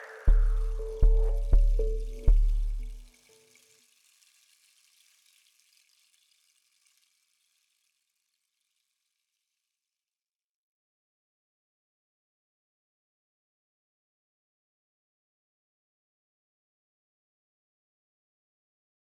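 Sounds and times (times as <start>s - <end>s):
drums: 0.0s - 3.3s.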